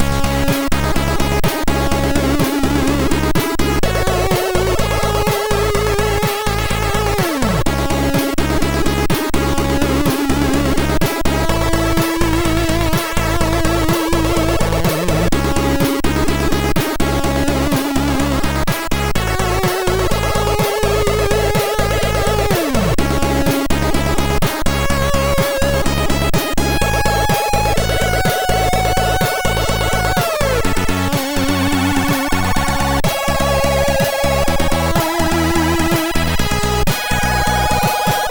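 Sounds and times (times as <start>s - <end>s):
SID chip MOS6581R4 music: 0.0s - 38.3s.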